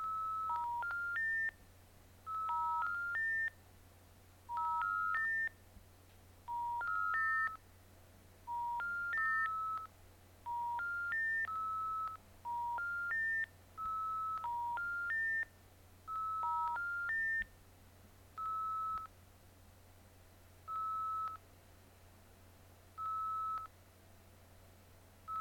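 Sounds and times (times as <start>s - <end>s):
dial-up modem connection failing: 0.0s - 1.5s, 2.3s - 3.5s, 4.5s - 5.5s, 6.5s - 7.6s, 8.5s - 9.9s, 10.5s - 15.4s, 16.1s - 17.5s, 18.4s - 19.1s, 20.7s - 21.4s, 23.0s - 23.7s.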